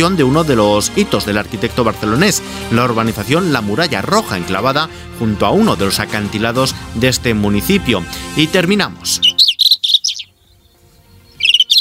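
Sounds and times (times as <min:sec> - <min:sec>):
speech: 0:00.0 - 0:09.3
rufous-tailed scrub robin singing: 0:09.1 - 0:11.7.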